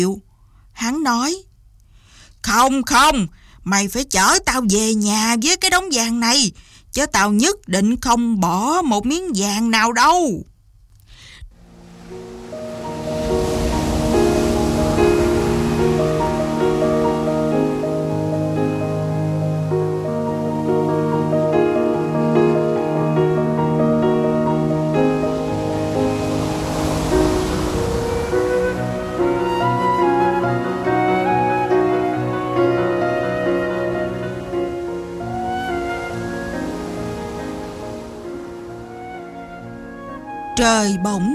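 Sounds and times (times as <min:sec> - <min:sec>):
speech: 0:00.0 - 0:01.5, 0:02.4 - 0:10.5, 0:40.6 - 0:41.3
howling sea wind: 0:11.5 - 0:40.6
sea waves: 0:11.5 - 0:41.3.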